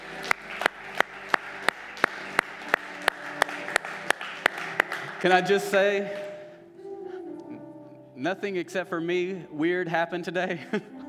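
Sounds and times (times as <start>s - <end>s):
audience applause and hand clapping: 0.0s - 6.5s
speech: 5.2s - 6.2s, 8.2s - 10.9s.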